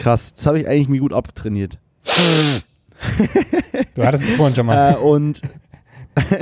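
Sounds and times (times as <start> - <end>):
speech: 0.0 - 5.6, 6.2 - 6.4
person sniffing: 2.0 - 2.7
laughter: 3.0 - 5.0.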